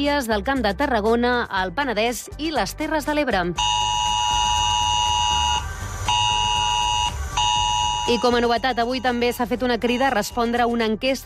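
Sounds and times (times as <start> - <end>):
speech: 0.0 - 3.9, 8.1 - 11.2
civil protection emergency alert tone: 3.6 - 10.7.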